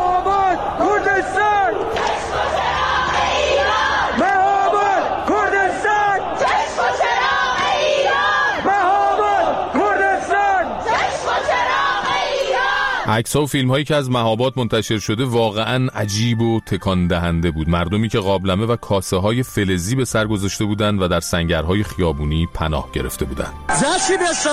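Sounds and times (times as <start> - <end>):
crowd chanting slogans in Chitgar town, Tehran: 0.0 - 13.1
speech: 13.1 - 24.5.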